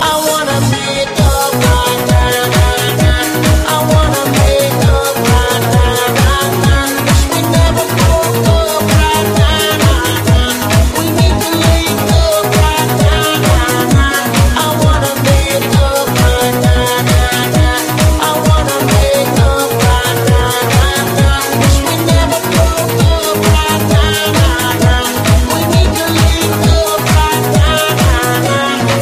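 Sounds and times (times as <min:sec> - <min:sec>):
trance mix: 0:00.0 - 0:29.0.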